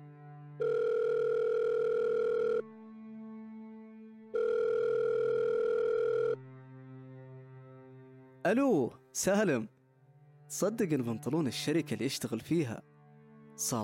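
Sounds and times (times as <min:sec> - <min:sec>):
ringback tone of an outgoing telephone call: 0:00.6 - 0:02.6, 0:04.4 - 0:06.4
speech: 0:08.5 - 0:09.7, 0:10.5 - 0:12.9, 0:13.6 - 0:13.8.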